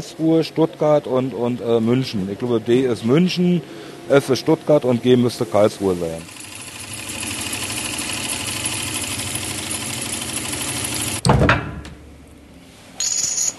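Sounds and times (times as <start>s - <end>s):
speech: 0.0s - 6.4s
hand-operated coin minting press buzzing at the Berlin state mint: 5.9s - 11.2s
hand-operated coin minting press heavy clunk: 11.2s - 12.0s.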